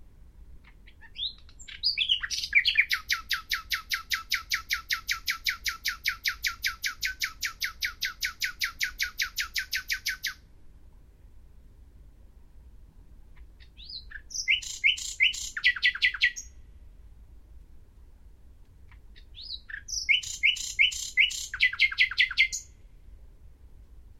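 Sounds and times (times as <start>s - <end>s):
common nightingale singing: 0.6s - 10.5s, 13.3s - 16.7s, 18.9s - 22.9s.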